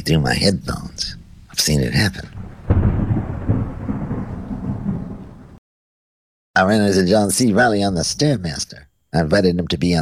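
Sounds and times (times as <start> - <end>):
speech: 0.0 - 2.4, 6.6 - 9.9
rolling thunder from a lightning storm: 1.0 - 5.6.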